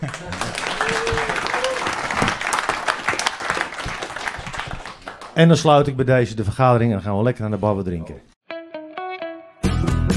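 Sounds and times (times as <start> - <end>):
crowd applauding: 0.0 - 5.5
speech: 5.4 - 8.3.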